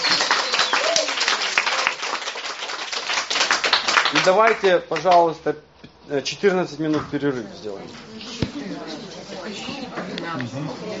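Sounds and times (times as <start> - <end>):
group applause closing a meeting: 0.0 - 5.2
speech: 4.2 - 8.4, 10.3 - 10.9.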